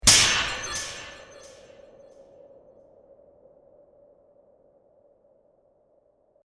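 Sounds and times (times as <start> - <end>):
demon sword sound effect: 0.0 - 1.8.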